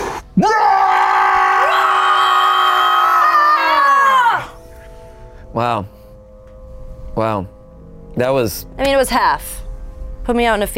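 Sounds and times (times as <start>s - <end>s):
speech: 0.4s - 0.7s, 5.6s - 6.0s, 7.2s - 7.6s, 8.2s - 9.6s, 10.3s - 10.7s
group of people screaming: 0.4s - 4.5s.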